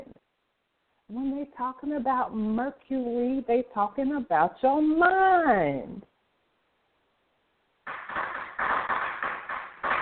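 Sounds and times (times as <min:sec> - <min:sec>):
speech: 0:01.1 - 0:06.1
fireworks popping: 0:07.8 - 0:10.0.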